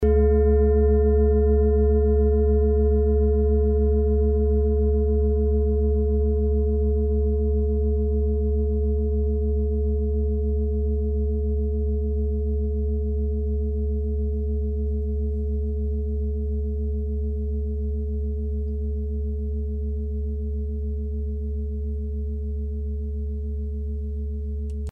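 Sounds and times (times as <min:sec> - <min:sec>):
singing bowl from Ladakh: 0:00.0 - 0:24.1.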